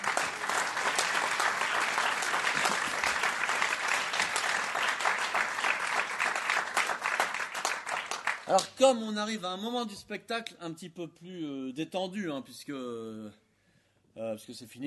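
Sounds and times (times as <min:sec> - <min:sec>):
audience applause: 0:00.0 - 0:08.7
speech: 0:08.5 - 0:13.4, 0:14.2 - 0:14.8.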